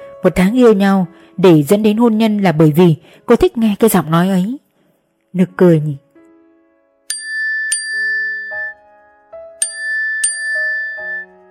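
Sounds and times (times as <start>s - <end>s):
speech: 0.2s - 4.6s, 5.3s - 6.0s
phone text message notification chime: 7.2s - 8.8s, 9.7s - 11.4s.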